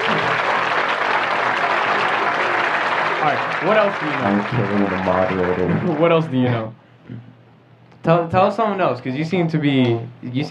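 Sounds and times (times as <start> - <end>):
people clapping: 0.0 - 6.6
speech: 3.3 - 7.4, 8.0 - 10.4.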